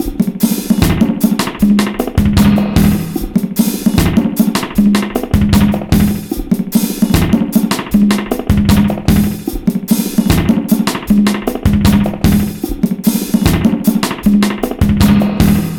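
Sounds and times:
breakbeat: 0.0s - 15.7s.

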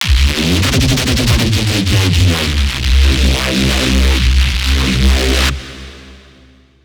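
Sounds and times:
reese bass: 0.0s - 6.2s.

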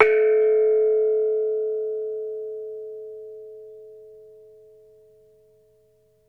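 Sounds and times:
metallophone: 0.0s - 2.1s.

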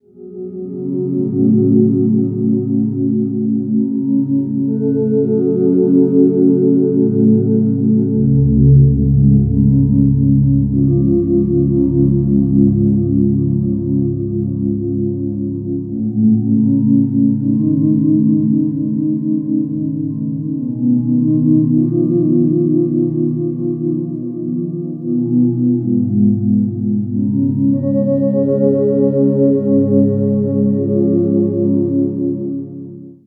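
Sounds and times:
ambient cloud keyboards: 0.0s - 33.2s.

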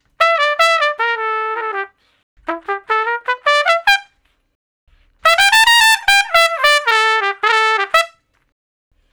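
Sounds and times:
trumpet shuffle in E: 0.0s - 8.5s.

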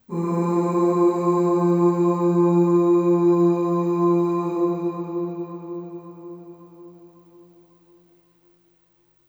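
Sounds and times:
long ooh vocal in F2 with long reverb: 0.0s - 7.9s.

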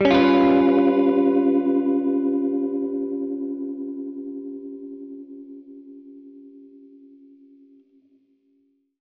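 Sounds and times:
Gretsch guitar G7b5 chord: 0.0s - 8.1s.

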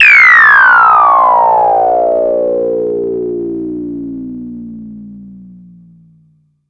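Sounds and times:
modulated falling effect: 0.0s - 6.6s.

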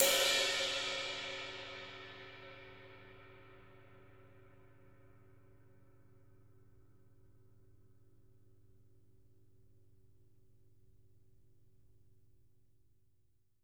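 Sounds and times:
ride cymbal: 0.0s - 3.2s
drums: 0.0s - 3.3s
crash cymbals: 0.0s - 3.8s.

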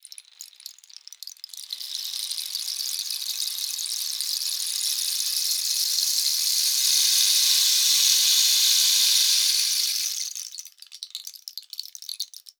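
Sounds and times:
percussion: 0.0s - 12.5s
rain: 1.5s - 10.6s.

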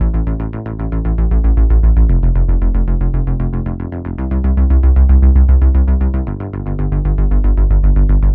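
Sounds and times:
modern bass run: 0.0s - 8.3s.

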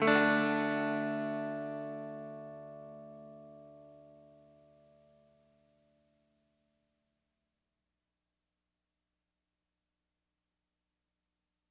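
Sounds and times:
70s analog funk soul guitar: 0.0s - 3.8s.

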